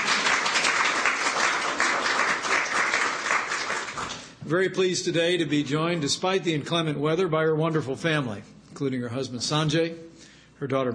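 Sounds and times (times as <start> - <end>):
crowd applause: 0.0 - 4.3
speech: 4.5 - 10.9.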